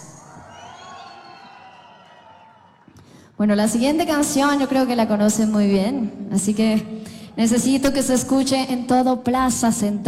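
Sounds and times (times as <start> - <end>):
live concert crowd cheering: 0.0 - 3.0
speech: 3.4 - 10.0.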